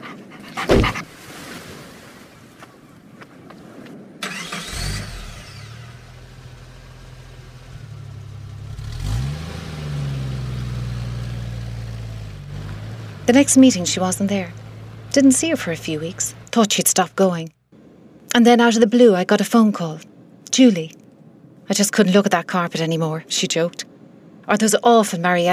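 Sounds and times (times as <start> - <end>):
dog panting: 0.0 - 1.1
car engine starting and running: 4.4 - 18.0
speech: 13.3 - 17.6, 18.3 - 21.0, 21.7 - 23.9, 24.5 - 25.5.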